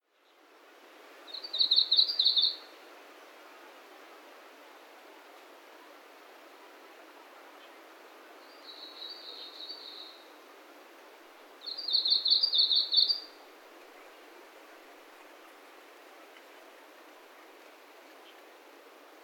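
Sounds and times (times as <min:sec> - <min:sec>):
Japanese leaf warbler song at Ozenuma, Japan: 0:01.2 - 0:03.3, 0:07.4 - 0:19.2.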